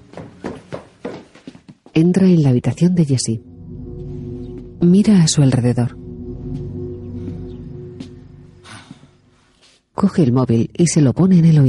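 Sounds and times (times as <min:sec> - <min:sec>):
footsteps running up stairs: 0:00.0 - 0:01.9
speech: 0:02.0 - 0:03.5, 0:04.8 - 0:06.0, 0:10.0 - 0:11.6.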